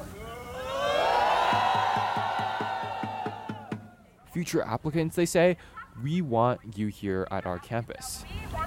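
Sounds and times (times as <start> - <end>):
students booing: 0.2 - 4.0
speech: 4.4 - 8.4.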